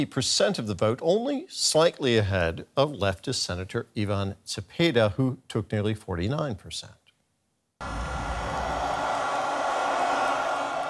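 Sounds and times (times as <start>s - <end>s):
speech: 0.0s - 7.0s
supporters of Abelardo de la Espriella cheering his narrow election victory: 7.8s - 10.8s.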